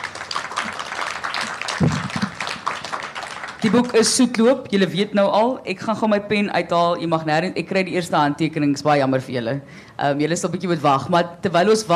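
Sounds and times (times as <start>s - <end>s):
crowd applauding: 0.0s - 4.3s
speech: 3.6s - 11.9s.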